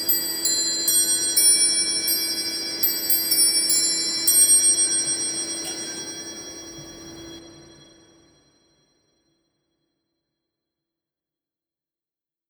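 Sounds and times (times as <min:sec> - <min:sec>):
musical clock mechanical instrument playing: 0:00.0 - 0:07.6.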